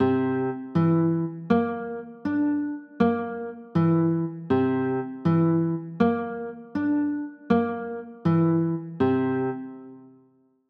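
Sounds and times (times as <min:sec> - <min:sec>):
chords: 0:00.0 - 0:10.1.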